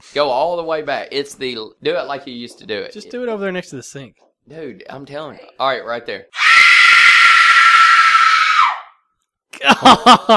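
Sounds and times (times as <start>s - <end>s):
speech: 0.0s - 6.4s, 9.6s - 10.3s
woman screaming: 6.4s - 9.0s
laughter: 9.6s - 10.3s.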